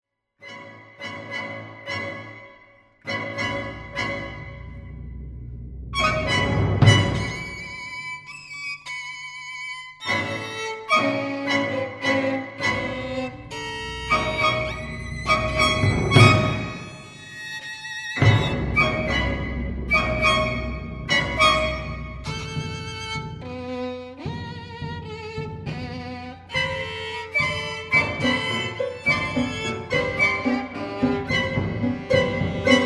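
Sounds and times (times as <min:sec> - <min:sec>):
violin concerto: 0:00.4 - 0:05.0, 0:06.0 - 0:32.8.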